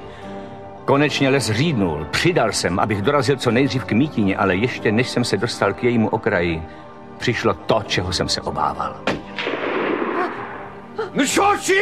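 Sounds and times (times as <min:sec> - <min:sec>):
speech: 0:00.9 - 0:09.5, 0:11.1 - 0:11.8
rifle gunshot: 0:09.1 - 0:10.9.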